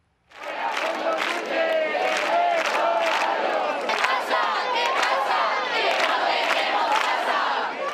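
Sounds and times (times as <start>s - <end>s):
protest crowd chanting: 0.4s - 7.9s.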